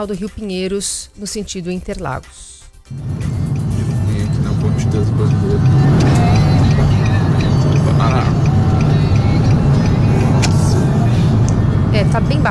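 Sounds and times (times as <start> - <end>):
speech: 0.0 - 3.4, 4.8 - 5.9, 12.0 - 12.5
slow highway traffic of trucks and cars: 2.9 - 12.5.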